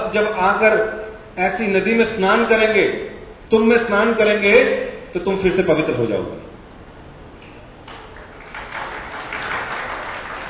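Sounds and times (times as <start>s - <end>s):
speech: 0.1s - 6.5s
audience applause: 7.9s - 10.4s.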